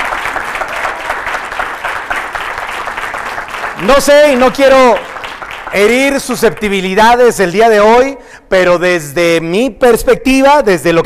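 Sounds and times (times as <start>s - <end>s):
applause: 0.0s - 7.4s
speech: 3.8s - 5.1s, 5.7s - 11.0s.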